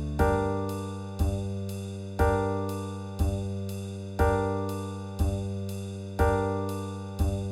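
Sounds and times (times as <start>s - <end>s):
minor key melody: 0.0s - 1.4s, 2.2s - 3.4s, 4.2s - 5.4s, 6.2s - 7.4s.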